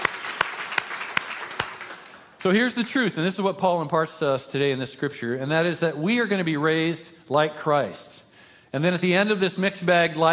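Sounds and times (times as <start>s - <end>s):
audience applause: 0.0s - 2.3s
speech: 2.4s - 10.3s.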